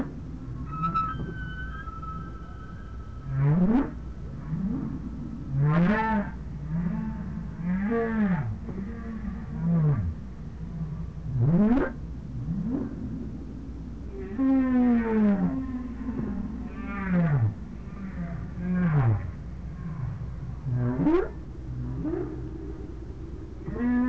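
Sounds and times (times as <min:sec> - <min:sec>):
low rumble: 0:00.0 - 0:24.0
whale calls: 0:00.4 - 0:10.0, 0:14.1 - 0:22.7, 0:23.6 - 0:24.0.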